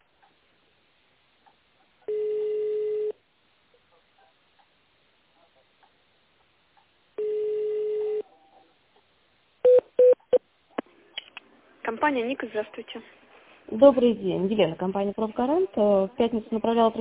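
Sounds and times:
phone ringing tones: 0:02.1 - 0:03.2, 0:07.2 - 0:08.2
speech: 0:11.9 - 0:16.9.

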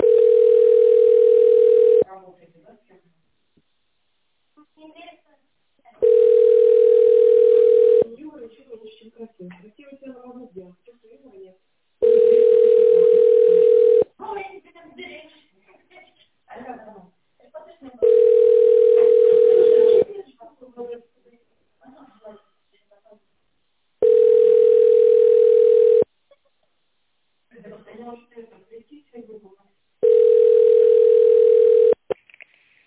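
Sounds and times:
telephone ringback tone while connecting: 0:00.0 - 0:02.0, 0:06.0 - 0:08.1, 0:12.0 - 0:14.1, 0:18.0 - 0:20.1, 0:24.0 - 0:26.1, 0:30.0 - 0:32.0.

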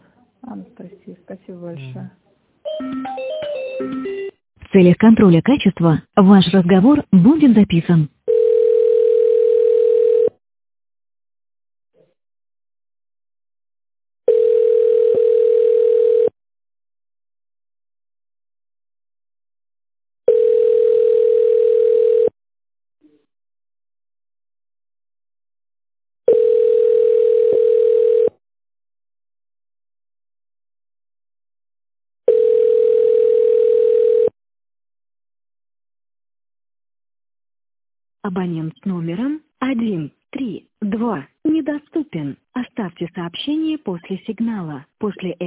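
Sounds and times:
speech: 0:00.6 - 0:02.2, 0:04.7 - 0:08.1, 0:38.3 - 0:45.4
telephone ringing tone while a call is transferred: 0:02.7 - 0:04.3, 0:08.3 - 0:10.4, 0:14.3 - 0:16.4, 0:20.3 - 0:22.4, 0:26.3 - 0:28.4, 0:32.3 - 0:34.4.

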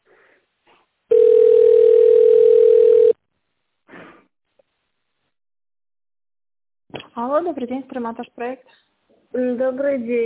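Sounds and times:
telephone ringback tone: 0:01.1 - 0:03.2
speech: 0:07.4 - 0:10.2.

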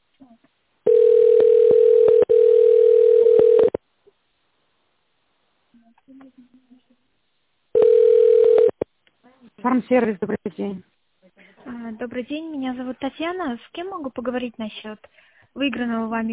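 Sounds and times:
telephone ringback tone while waiting for operator: 0:00.9 - 0:03.8, 0:07.8 - 0:08.7
speech: 0:09.9 - 0:10.9, 0:11.9 - 0:16.3.

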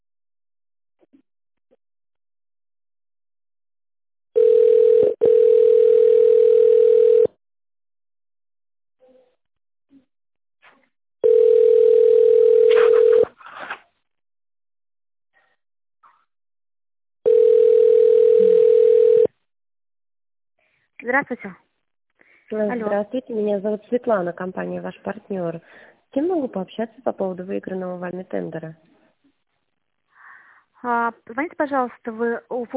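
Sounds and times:
telephone ringing tone while waiting on hold: 0:04.4 - 0:07.4, 0:11.2 - 0:13.3, 0:17.2 - 0:19.3
speech: 0:21.1 - 0:21.6, 0:22.5 - 0:28.9, 0:30.8 - 0:32.7.

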